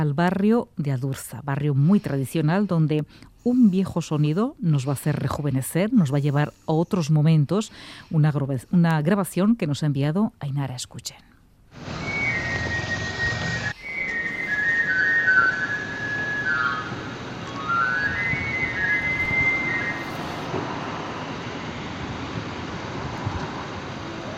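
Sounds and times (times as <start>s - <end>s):
speech: 0.0s - 11.9s
wind-like hiss: 11.7s - 24.3s
knife grinder's whistle in the Adurza neighbourhood of Vitoria-Gasteiz: 11.8s - 20.4s.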